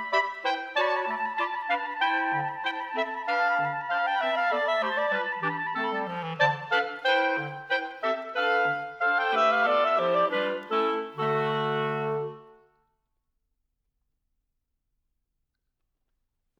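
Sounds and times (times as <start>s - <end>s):
gavotte: 0.0s - 12.8s.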